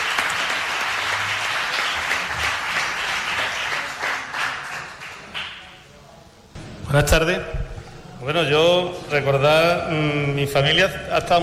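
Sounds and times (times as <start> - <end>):
audience applause: 0.0 - 5.8
speech: 6.9 - 7.6, 8.2 - 11.4.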